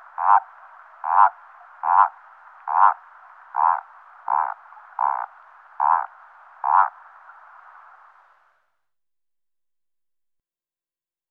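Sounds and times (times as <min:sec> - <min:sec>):
common toad croaking: 0:00.0 - 0:07.0.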